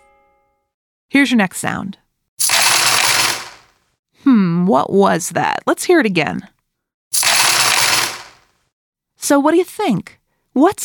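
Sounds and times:
speech: 1.1 - 2.0, 4.7 - 6.5, 9.3 - 10.8
coins clattering and jingling: 2.4 - 3.7, 7.2 - 8.4.

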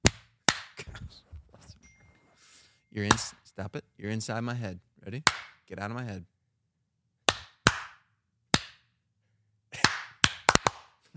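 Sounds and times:
hand claps: 0.0 - 1.0, 3.1 - 3.3, 5.2 - 5.6, 7.3 - 8.9, 9.7 - 11.1
speech: 2.9 - 6.3.

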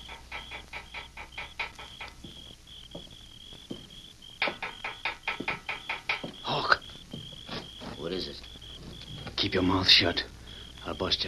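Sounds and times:
small stone rapping on cell window bars: 0.0 - 2.3, 4.4 - 6.6
speech: 9.5 - 10.3, 10.9 - 11.2.

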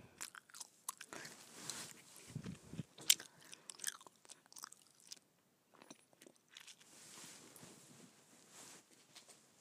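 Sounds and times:
gum chewing: 0.2 - 6.9.

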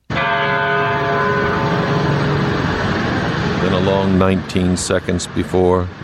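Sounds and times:
church bell ringing in Newtown Connecticut in remembrance: 0.0 - 4.7
speech: 3.7 - 6.0.

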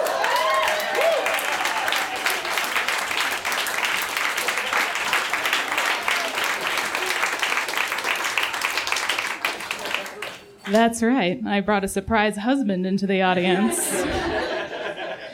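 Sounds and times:
audience applause: 0.0 - 10.8
speech: 10.7 - 14.4
laughter: 13.4 - 15.3.

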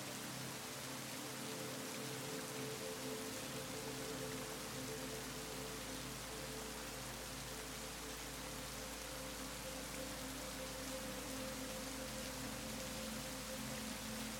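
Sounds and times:
soft sustained musical tones: 0.0 - 14.3
steady dense rain: 0.0 - 14.3.

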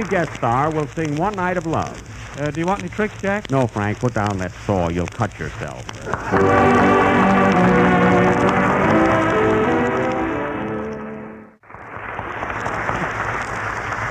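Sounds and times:
audience applause: 0.0 - 0.9, 6.0 - 11.0, 11.6 - 14.0
speech: 0.0 - 7.0.

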